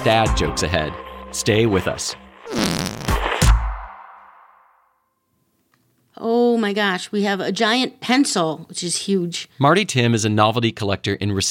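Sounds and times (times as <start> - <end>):
speech: 0.0 - 3.0, 6.2 - 11.4
whoopee cushion fart noise: 2.5 - 3.6.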